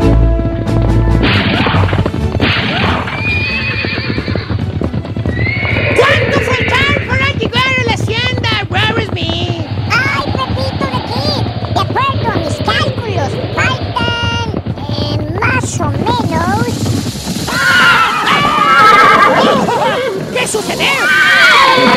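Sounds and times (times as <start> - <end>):
horses galloping at full speed: 0.0 - 21.9
horses whinnying and neighing: 1.4 - 7.2, 17.4 - 21.9.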